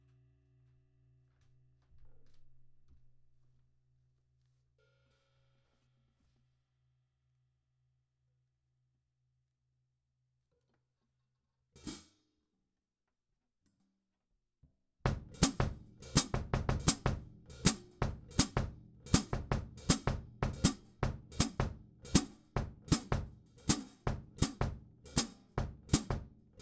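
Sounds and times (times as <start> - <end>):
percussion bridge hi-hat: 15.2 - 26.5.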